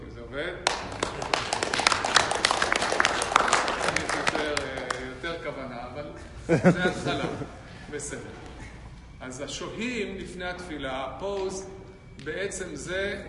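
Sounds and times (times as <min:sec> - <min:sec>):
speech: 0:00.3 - 0:01.3, 0:06.2 - 0:08.5, 0:09.2 - 0:13.2
group clapping: 0:00.6 - 0:05.2
laughter: 0:01.0 - 0:02.0, 0:06.2 - 0:07.9.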